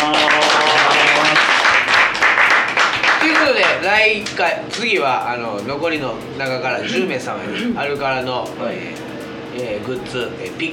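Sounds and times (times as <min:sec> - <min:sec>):
crowd applause: 0:00.0 - 0:04.4
speech: 0:04.0 - 0:10.7.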